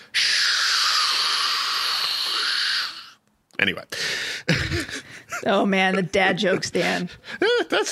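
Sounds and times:
voice imitating white noise hiss: 0:00.0 - 0:03.2
speech: 0:03.6 - 0:04.6, 0:05.4 - 0:07.8.

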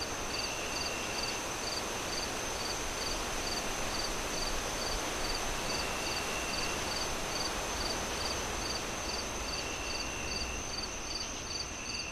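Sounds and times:
cricket chirping: 0:00.0 - 0:12.1.

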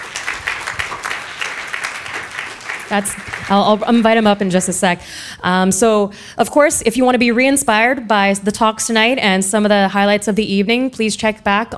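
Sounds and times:
audience applause: 0:00.0 - 0:04.4
speech: 0:02.9 - 0:11.7.

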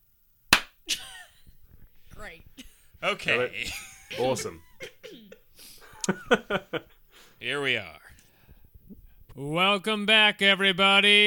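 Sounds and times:
single hand clap: 0:00.5 - 0:00.8
laughter: 0:02.6 - 0:07.0
speech: 0:03.0 - 0:04.7, 0:06.1 - 0:08.0, 0:09.4 - 0:11.2.

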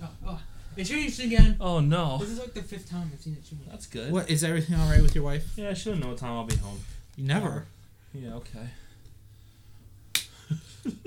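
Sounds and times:
speech: 0:00.8 - 0:08.8
high five hand slap: 0:10.1 - 0:10.4.

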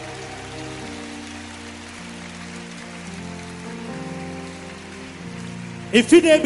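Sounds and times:
audience clapping: 0:00.0 - 0:06.4.

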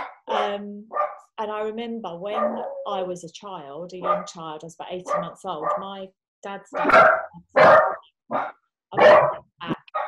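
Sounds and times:
two or more dogs barking in chorus: 0:00.0 - 0:01.3, 0:02.2 - 0:03.0, 0:04.0 - 0:06.0, 0:06.6 - 0:10.0
speech: 0:00.5 - 0:07.2.

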